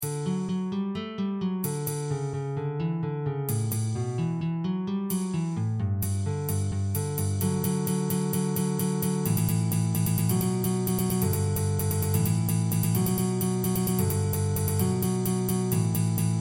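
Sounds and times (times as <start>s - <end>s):
guitar: 0.0s - 6.0s, 6.6s - 16.4s.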